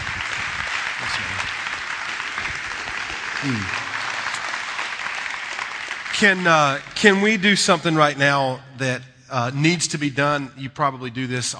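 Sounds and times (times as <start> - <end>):
voices in a church crowd: 0.0 - 4.4
church audience applause welcoming a guest preacher in Kansas City: 0.0 - 8.1
speech: 1.0 - 1.6, 3.4 - 3.8, 6.2 - 11.5.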